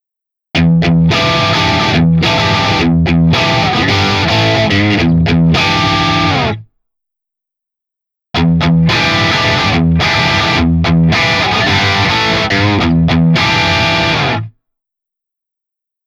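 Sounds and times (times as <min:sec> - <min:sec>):
crunchy electric guitar through single coil pickup: 0:00.6 - 0:06.7, 0:08.4 - 0:14.5.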